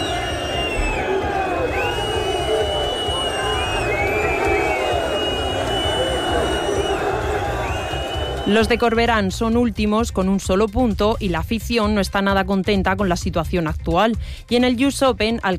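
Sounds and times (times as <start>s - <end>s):
stadium crowd protesting departing team bus: 0.0s - 9.0s
speech: 8.5s - 15.5s.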